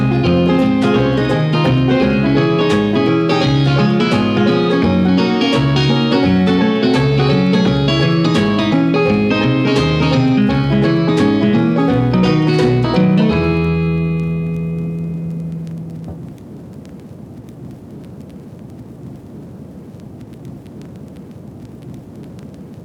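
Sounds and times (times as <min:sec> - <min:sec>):
party country music loop: 0:00.0 - 0:16.1.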